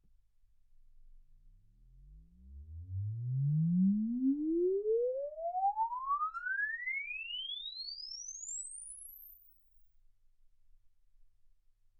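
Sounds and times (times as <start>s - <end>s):
exponential sine sweep from 10 Hz to 24 kHz: 2.0s - 9.6s.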